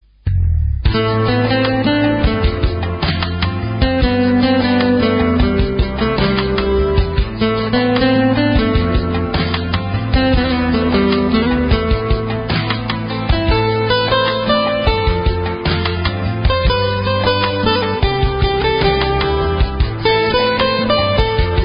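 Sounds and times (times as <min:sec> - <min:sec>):
background music: 0:00.3 - 0:21.6.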